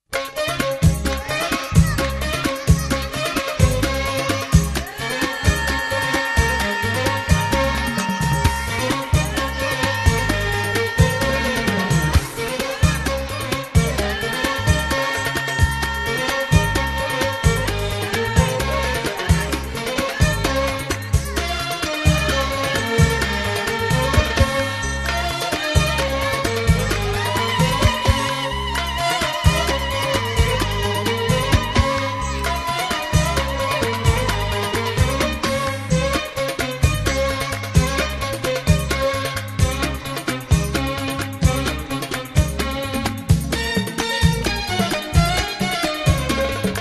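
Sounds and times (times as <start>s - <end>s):
Moroccan instrumental music: 0.1s - 46.7s.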